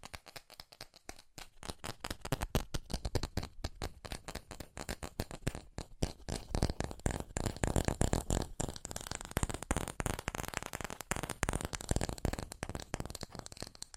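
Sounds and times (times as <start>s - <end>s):
fast ASMR tapping: 0.0s - 13.9s.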